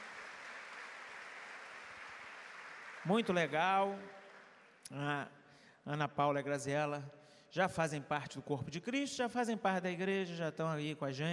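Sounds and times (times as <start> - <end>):
audience applause: 0.0 - 4.8
speech: 3.0 - 4.2, 4.9 - 11.3.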